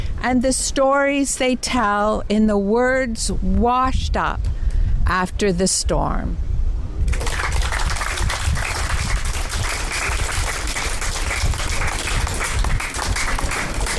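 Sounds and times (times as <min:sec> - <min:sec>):
speech: 0:00.2 - 0:06.5
audience applause: 0:07.1 - 0:13.9.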